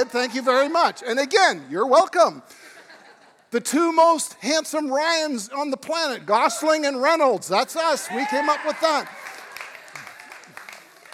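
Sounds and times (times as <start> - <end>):
speech: 0.0 - 2.7, 3.5 - 9.3
people clapping: 8.4 - 11.1.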